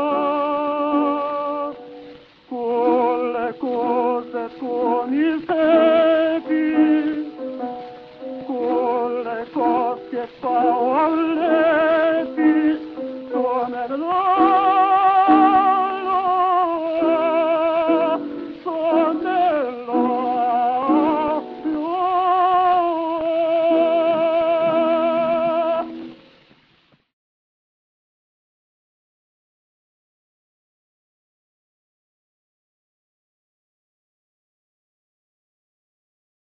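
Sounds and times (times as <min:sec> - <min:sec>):
gramophone playing: 0:00.0 - 0:26.2.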